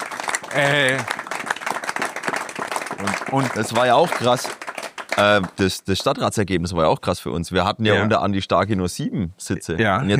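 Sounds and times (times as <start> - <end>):
crowd applause: 0.0 - 6.2
speech: 0.5 - 1.2, 3.0 - 4.6, 5.2 - 10.1.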